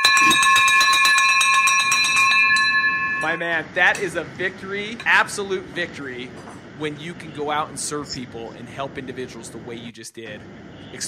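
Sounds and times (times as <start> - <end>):
victory bell ringing: 0.0 - 4.4
speech: 0.3 - 0.5, 3.2 - 11.0.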